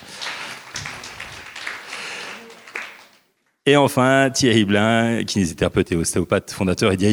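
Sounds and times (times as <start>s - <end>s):
audience applause: 0.0s - 3.3s
speech: 3.7s - 7.1s.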